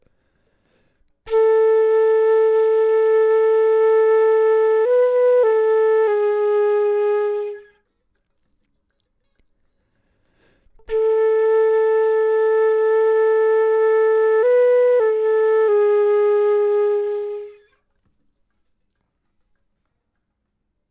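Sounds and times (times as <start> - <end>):
flute: 1.3 - 7.9, 10.8 - 17.8.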